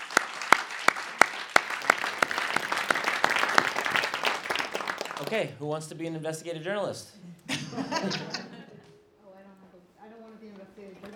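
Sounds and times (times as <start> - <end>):
audience applauding: 0.0 - 5.5
speech: 5.2 - 8.5
laughter: 7.3 - 9.0.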